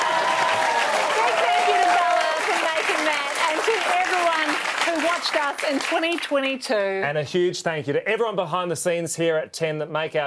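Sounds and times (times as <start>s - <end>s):
cheering and whooping voices: 0.0s - 3.0s
sustained loud crowd applause: 0.0s - 6.3s
speech: 5.1s - 10.2s.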